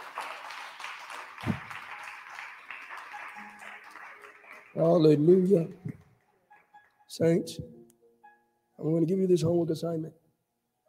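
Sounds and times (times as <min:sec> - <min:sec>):
audience clapping hands: 0:00.0 - 0:07.1
speech: 0:04.8 - 0:06.0, 0:07.2 - 0:07.8, 0:08.8 - 0:10.2.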